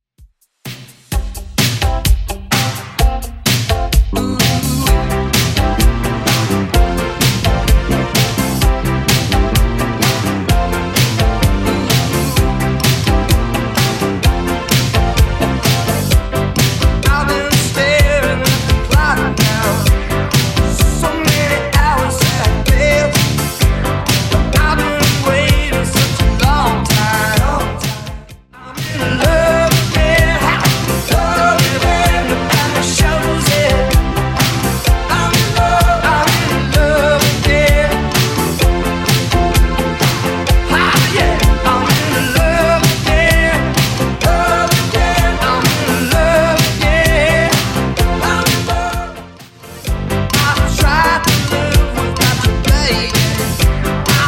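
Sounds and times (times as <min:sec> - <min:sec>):
80s Redrum drum machine beat: 0:00.2 - 0:49.3, 0:49.9 - 0:54.2.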